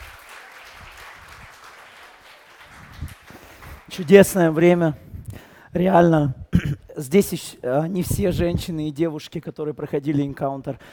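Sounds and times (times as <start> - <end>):
crowd applauding: 0.0 - 4.5
speech: 4.0 - 5.1, 5.7 - 6.4, 7.0 - 10.9.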